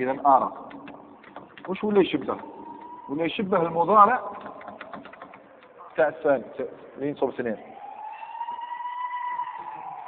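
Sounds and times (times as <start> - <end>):
speech: 0.0 - 0.7, 1.6 - 2.5, 3.1 - 4.5, 6.0 - 7.7
ambulance siren: 1.8 - 4.4, 7.3 - 10.0.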